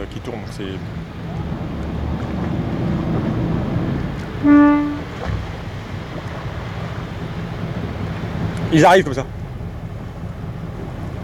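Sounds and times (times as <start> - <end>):
constant wind on open water: 0.0 - 11.2
engine-like rumble: 0.0 - 11.2
speech: 0.2 - 1.5, 4.4 - 4.7, 8.7 - 9.4
short boat horn toot: 3.4 - 5.7.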